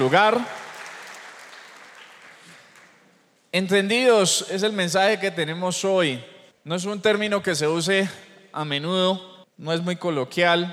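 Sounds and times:
speech: 0:00.0 - 0:00.6, 0:03.5 - 0:10.7
loud audience applause: 0:00.0 - 0:03.0.

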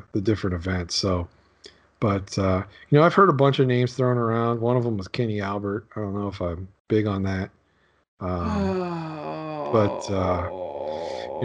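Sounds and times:
speech: 0:00.1 - 0:07.6, 0:08.2 - 0:11.4
person groaning: 0:08.2 - 0:11.4.

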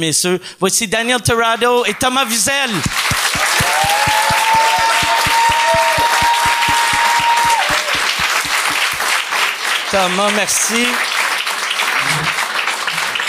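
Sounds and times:
speech: 0:00.0 - 0:04.7, 0:10.0 - 0:11.2
audience applause: 0:02.6 - 0:13.2
fast thumping beat: 0:02.7 - 0:09.2
high-pitched whistle or cheer: 0:03.2 - 0:08.4.

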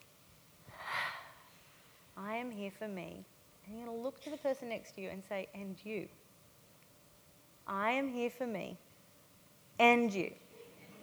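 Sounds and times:
deep breath in and out during a guided group breathing exercise: 0:00.7 - 0:01.7
speech: 0:02.6 - 0:06.2, 0:07.7 - 0:08.8, 0:09.8 - 0:10.4.

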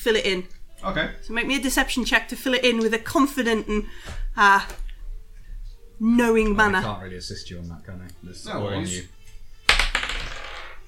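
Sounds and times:
speech: 0:00.0 - 0:04.8, 0:06.0 - 0:09.2
dice rolled across a hard surface: 0:09.7 - 0:10.8.

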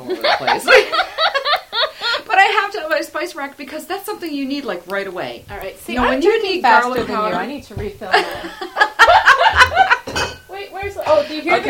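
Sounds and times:
laughter: 0:00.0 - 0:02.3, 0:08.1 - 0:10.1
speech: 0:00.1 - 0:01.1, 0:02.6 - 0:08.8, 0:11.1 - 0:11.6
wine bottles clinking: 0:09.7 - 0:10.5.

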